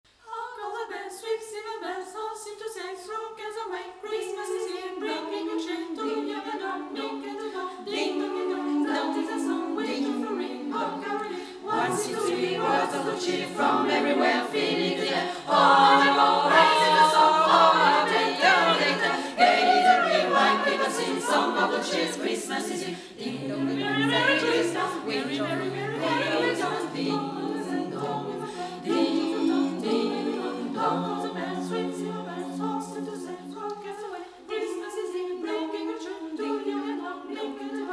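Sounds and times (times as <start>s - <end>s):
choir chanting: 0.3s - 37.9s.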